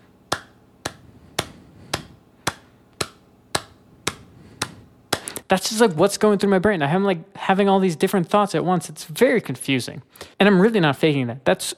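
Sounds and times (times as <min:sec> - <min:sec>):
hands clapping a fast rhythm: 0:00.3 - 0:05.5
speech: 0:05.5 - 0:11.7.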